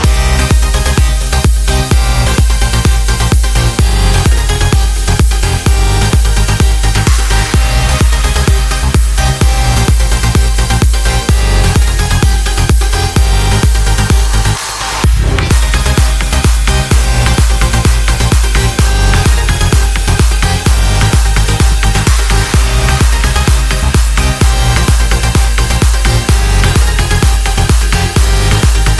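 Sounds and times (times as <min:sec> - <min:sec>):
electro music: 0:00.0 - 0:28.9.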